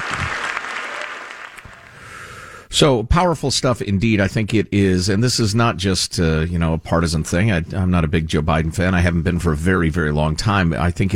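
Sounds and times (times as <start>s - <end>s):
large crowd applauding in a hall from Congress: 0.0s - 2.2s
speech: 2.7s - 11.1s.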